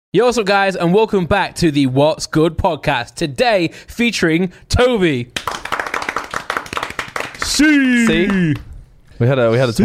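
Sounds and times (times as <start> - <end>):
speech: 0.1 - 5.6, 7.5 - 9.8
a few people clapping to welcome a guest: 5.3 - 8.7.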